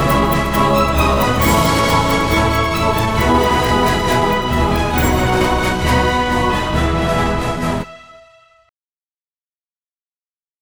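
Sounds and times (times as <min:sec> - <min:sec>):
exit music for a campus ceremony: 0:00.0 - 0:07.8.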